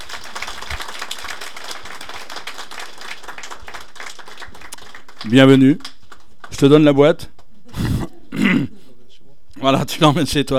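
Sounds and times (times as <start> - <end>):
crowd applause: 0.0 - 6.9
speech: 5.2 - 5.9, 6.6 - 7.3, 9.6 - 10.5.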